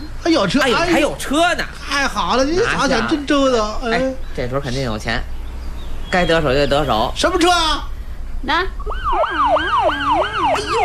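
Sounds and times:
speech: 0.2 - 5.3, 6.1 - 10.8
police car siren: 8.7 - 10.8.

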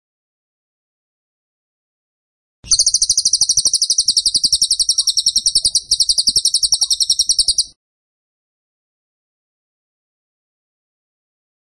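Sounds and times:
bird song of sharp high chipping pulses: 2.7 - 7.7.

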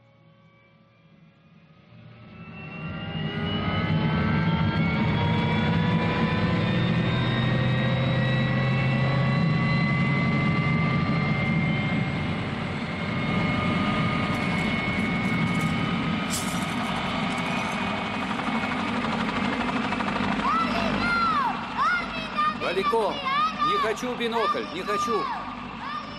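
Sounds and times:
helicopter engine and rotor spinning up as it lifts off: 0.0 - 26.1
helicopter turbine whine: 0.0 - 26.1
chain fastened to a helicopter wheel pulling taut and snapping: 15.1 - 17.9
speech: 22.8 - 25.4.

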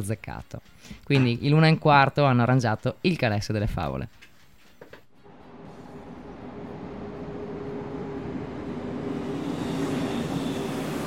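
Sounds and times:
speech: 0.0 - 4.3
faint humming tone: 5.2 - 11.0
regional train from Venezia Santa Lucia to Trieste Centrale arriving at platform 4: 5.2 - 11.0
hiss: 8.8 - 11.0.

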